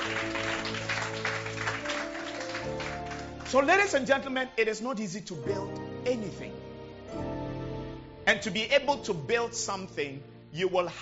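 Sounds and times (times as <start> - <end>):
audience hand clapping: 0.0 - 4.3
speech: 3.5 - 7.3, 8.3 - 11.0.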